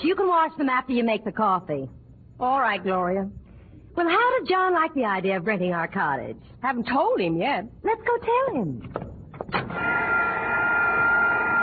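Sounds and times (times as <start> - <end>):
speech: 0.0 - 3.4, 4.0 - 9.1
vacuum cleaner running: 9.7 - 11.6.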